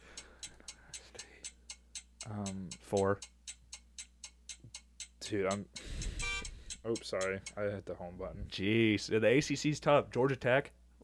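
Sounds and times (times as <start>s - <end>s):
loud ticking timer: 0.0s - 8.1s
speech: 2.3s - 3.4s, 5.3s - 5.9s, 6.8s - 11.0s.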